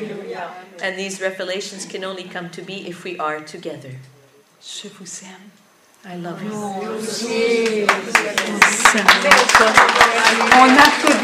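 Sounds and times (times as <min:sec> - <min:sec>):
speech: 0:00.0 - 0:11.2
raised voices: 0:06.3 - 0:11.2
audience clapping along: 0:07.5 - 0:11.2.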